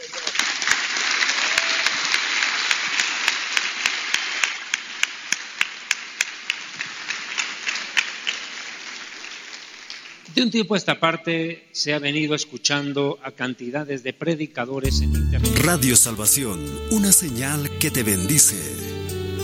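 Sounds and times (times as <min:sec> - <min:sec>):
applause: 0:00.0 - 0:10.3
speech: 0:10.4 - 0:19.3.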